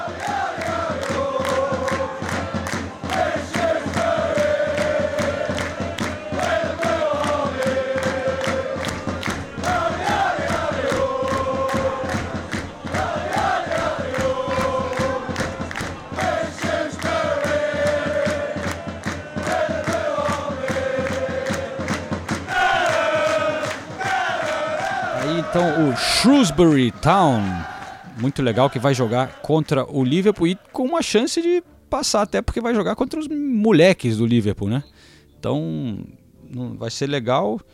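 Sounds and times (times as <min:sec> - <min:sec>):
drums: 0:00.0 - 0:28.8
large crowd of football fans singing a repeating melodic chant: 0:00.0 - 0:31.0
speech: 0:26.3 - 0:37.7.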